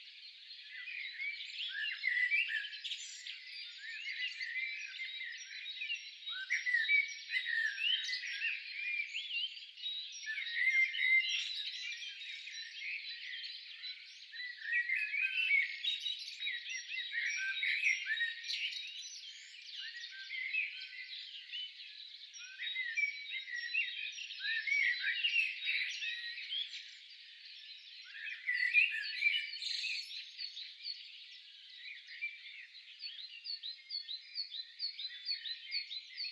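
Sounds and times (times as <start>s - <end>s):
blackbird chirping: 0.0s - 36.3s.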